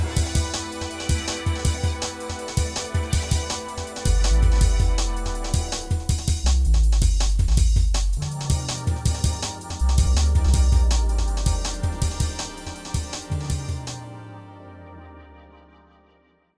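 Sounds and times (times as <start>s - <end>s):
jungle bass music: 0.0s - 14.8s.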